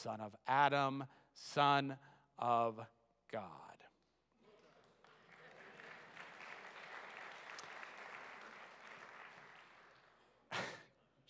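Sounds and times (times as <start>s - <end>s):
speech: 0.0s - 3.8s
audience clapping: 4.6s - 10.7s.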